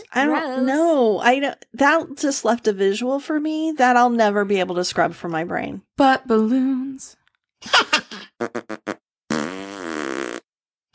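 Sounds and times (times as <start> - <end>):
speech: 0.0 - 9.0
farts: 8.4 - 10.9.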